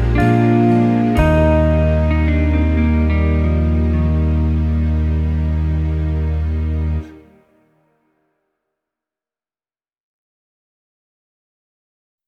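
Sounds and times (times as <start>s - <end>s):
very slow hymn verse: 0.0s - 7.6s.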